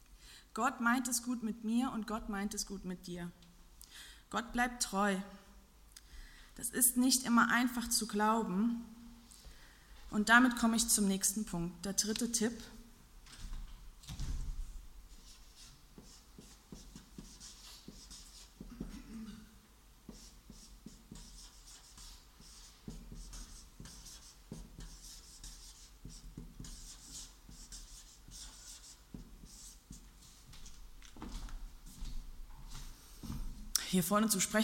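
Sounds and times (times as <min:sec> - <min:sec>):
speech: 0:00.6 - 0:05.4, 0:06.6 - 0:09.0, 0:10.1 - 0:12.8, 0:34.0 - 0:34.6
chalk or marker writing on a board: 0:15.1 - 0:19.0, 0:20.1 - 0:30.4.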